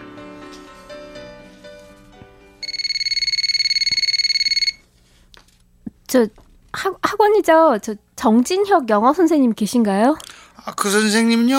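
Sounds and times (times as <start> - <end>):
soft music: 0.0 - 3.0
telephone ringing tone: 2.6 - 4.9
speech: 6.1 - 11.5.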